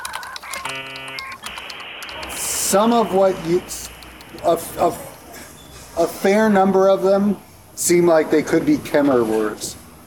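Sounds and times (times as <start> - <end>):
typing a Google search on a computer keyboard: 0.0 - 5.3
sustained electronic tone: 0.2 - 5.8
speech: 0.7 - 1.0, 2.7 - 5.1, 6.0 - 9.8.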